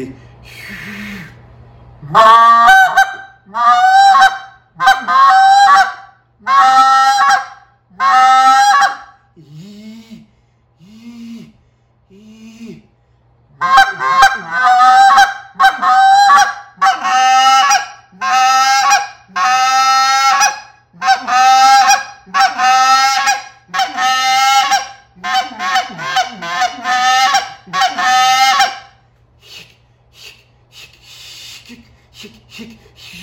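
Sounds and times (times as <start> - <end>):
goose call honks: 2.0 - 9.0, 13.6 - 28.9.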